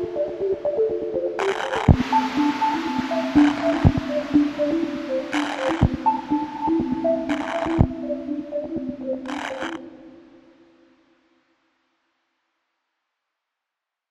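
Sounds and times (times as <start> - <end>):
dreamy noise guitar: 0.0 - 10.6.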